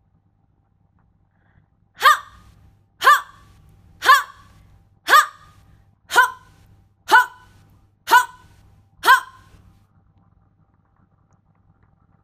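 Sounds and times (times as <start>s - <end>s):
voice exclaiming: 2.0s - 2.4s, 3.0s - 9.6s.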